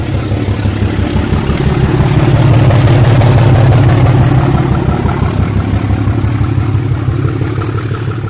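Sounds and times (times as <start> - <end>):
Class 37 diesel locomotive engine: 0.0 - 8.2.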